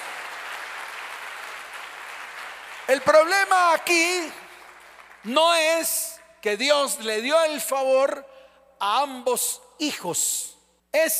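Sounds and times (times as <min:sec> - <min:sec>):
audience applause: 0:00.0 - 0:03.5, 0:04.5 - 0:05.3
speech: 0:02.9 - 0:04.4, 0:05.2 - 0:11.1.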